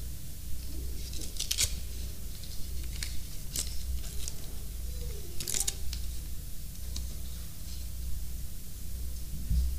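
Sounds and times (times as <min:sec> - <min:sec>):
faint steady hum: 0:00.0 - 0:09.7
Father's Day card envelope paper tearing: 0:01.0 - 0:04.5, 0:05.3 - 0:06.2.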